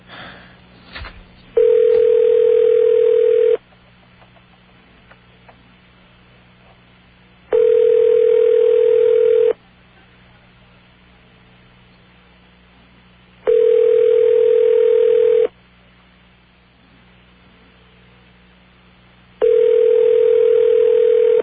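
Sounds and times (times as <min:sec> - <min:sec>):
telephone ringback tone on the line: 0:01.6 - 0:03.6, 0:07.5 - 0:09.6, 0:13.5 - 0:15.5, 0:19.4 - 0:21.4.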